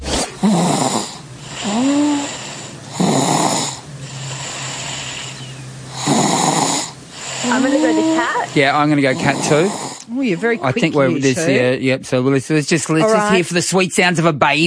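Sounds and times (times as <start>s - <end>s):
person snoring: 0.0s - 11.7s
low hum: 0.0s - 12.0s
speech: 7.7s - 14.6s.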